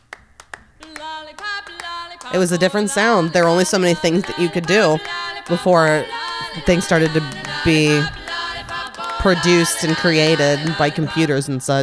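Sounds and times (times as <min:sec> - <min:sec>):
sharp handclaps in a pop song: 0:00.0 - 0:02.4, 0:04.2 - 0:10.0
pop song: 0:00.8 - 0:11.8
speech: 0:01.2 - 0:08.2, 0:09.2 - 0:11.8.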